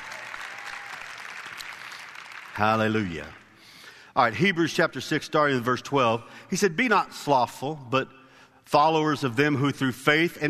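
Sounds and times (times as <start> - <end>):
audience applause: 0.0 - 2.9
speech: 2.6 - 3.4, 4.2 - 10.4.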